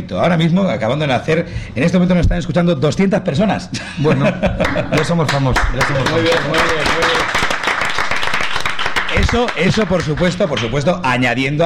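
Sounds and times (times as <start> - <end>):
speech: 0.0 - 7.4, 9.3 - 11.6
laughter: 3.8 - 7.4
crowd applauding: 4.6 - 10.8.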